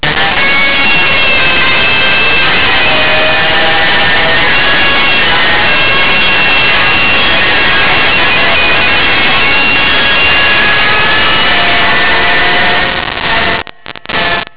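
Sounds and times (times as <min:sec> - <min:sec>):
guitar: 0:00.0 - 0:14.5.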